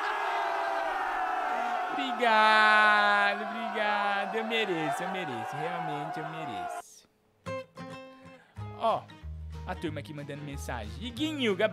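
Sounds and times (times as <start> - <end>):
large crowd cheering and applauding: 0.0 - 6.8
speech: 2.0 - 6.9, 8.8 - 11.7.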